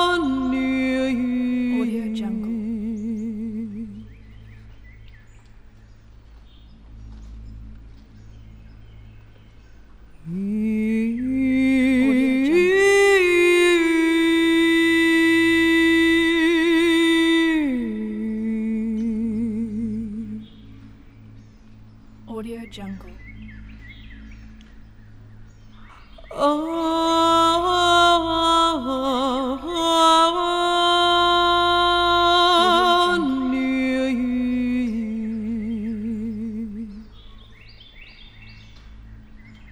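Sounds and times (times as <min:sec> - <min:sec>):
shamanic woman chanting in the forest: 0:00.0 - 0:04.1, 0:10.3 - 0:20.4, 0:22.3 - 0:23.2, 0:26.2 - 0:37.1.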